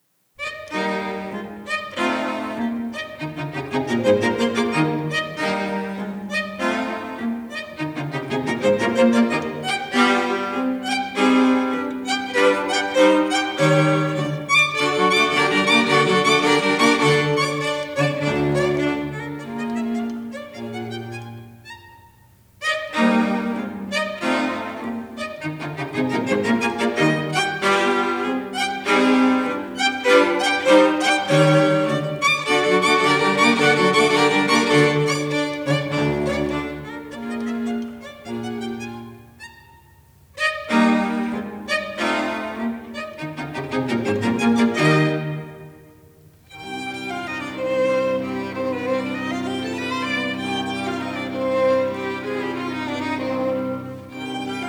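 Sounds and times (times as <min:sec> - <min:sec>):
string quartet: 0:00.0 - 0:54.6.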